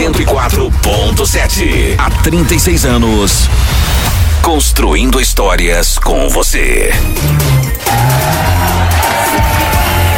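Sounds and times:
speech: 0.2s - 9.5s
large sports crowd cheering excitedly: 7.7s - 10.1s.

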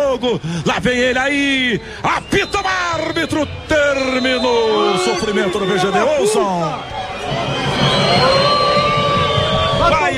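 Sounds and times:
speech: 0.1s - 8.6s
stadium crowd booing the team: 2.0s - 10.1s.

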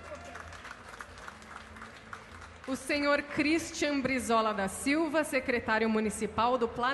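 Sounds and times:
faint clapping at a municipal ceremony: 0.0s - 2.8s
speech: 2.7s - 6.9s.

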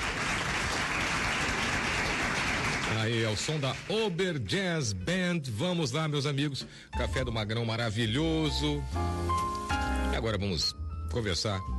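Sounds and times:
audience applause: 0.0s - 4.2s
speech: 2.9s - 9.5s, 10.2s - 11.7s.

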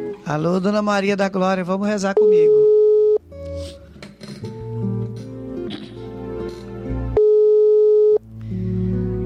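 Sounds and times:
music: 0.0s - 1.9s, 3.2s - 9.2s
speech: 0.3s - 2.8s
telephone ringback tone: 2.2s - 3.2s, 7.2s - 8.2s.

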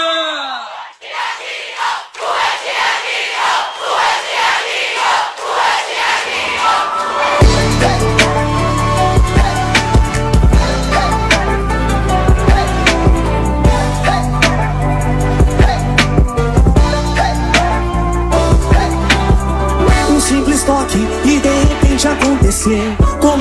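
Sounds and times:
large crowd cheering and roaring: 0.0s - 20.6s
band with heavy bass and drums: 6.6s - 23.3s.

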